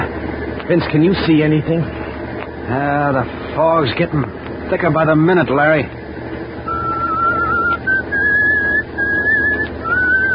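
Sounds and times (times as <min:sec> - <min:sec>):
speech: 0:00.7 - 0:02.0, 0:02.7 - 0:06.0
person whistling a tune: 0:06.7 - 0:10.3.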